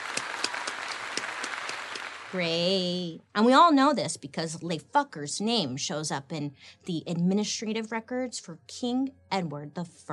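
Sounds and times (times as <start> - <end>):
crowd applause: 0.0 - 2.4
speech: 2.3 - 10.1.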